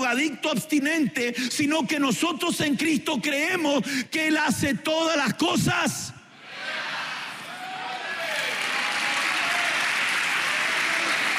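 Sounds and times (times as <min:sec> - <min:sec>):
speech: 0:00.1 - 0:06.2
audience applause: 0:07.6 - 0:11.3.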